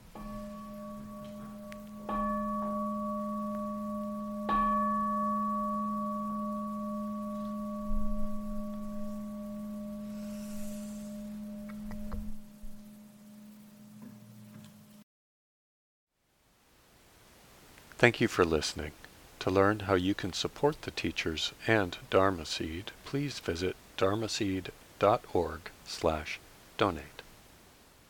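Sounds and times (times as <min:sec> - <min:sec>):
meditation bell ringing: 0:00.0 - 0:13.9
speech: 0:18.0 - 0:27.2.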